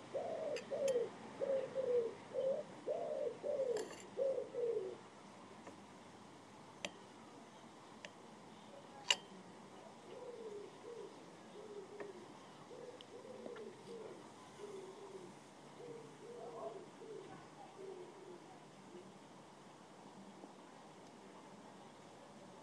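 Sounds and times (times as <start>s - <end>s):
wood pigeons cooing: 0.0s - 5.1s, 10.0s - 18.6s.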